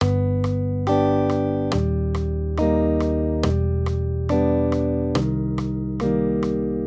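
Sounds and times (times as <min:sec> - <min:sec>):
major triads: 0:00.0 - 0:06.8.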